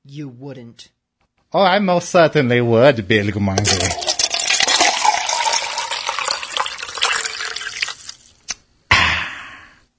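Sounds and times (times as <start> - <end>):
speech: 0.1 - 4.0
rum being poured and mixed with coke: 3.6 - 8.5.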